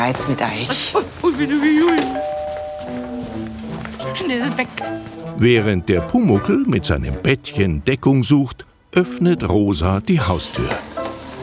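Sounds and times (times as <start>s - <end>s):
speech: 0.0s - 3.1s, 4.2s - 10.9s
doorbell ringing: 2.0s - 4.1s.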